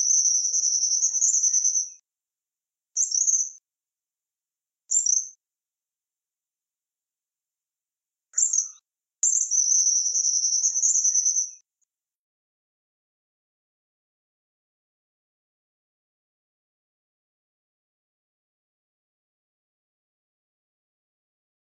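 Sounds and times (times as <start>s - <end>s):
Tropical kingbird song: 0.0s - 2.0s, 3.0s - 3.6s, 4.9s - 5.3s, 8.4s - 11.6s.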